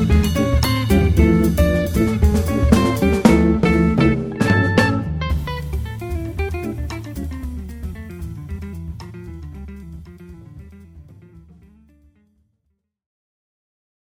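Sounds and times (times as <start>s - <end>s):
organ trio playing: 0.0s - 8.0s.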